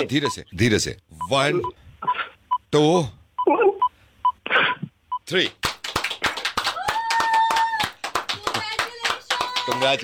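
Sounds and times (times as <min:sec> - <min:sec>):
speech: 0:00.0 - 0:01.8, 0:02.7 - 0:03.7, 0:05.3 - 0:05.7, 0:09.8 - 0:10.0
people clapping: 0:05.4 - 0:10.0.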